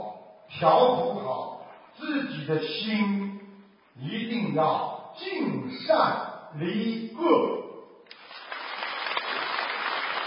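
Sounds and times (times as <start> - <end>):
speech: 0.5 - 3.3, 3.9 - 7.6
audience applause: 8.1 - 10.2.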